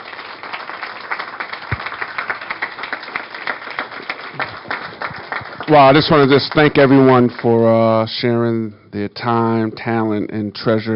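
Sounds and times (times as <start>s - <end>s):
round of applause: 0.0s - 7.6s
speech: 5.7s - 10.9s.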